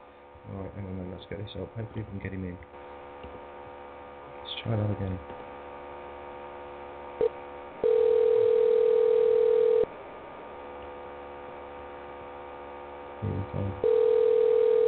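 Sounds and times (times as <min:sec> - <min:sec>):
speech: 0:00.5 - 0:03.4, 0:04.6 - 0:05.4, 0:13.2 - 0:14.0
telephone ringing on outgoing call: 0:07.8 - 0:09.9, 0:13.8 - 0:14.8.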